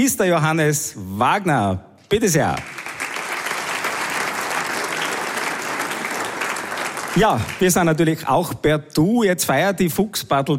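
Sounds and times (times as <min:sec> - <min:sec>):
speech: 0:00.0 - 0:02.8, 0:07.2 - 0:10.5
audience applause: 0:02.6 - 0:08.2.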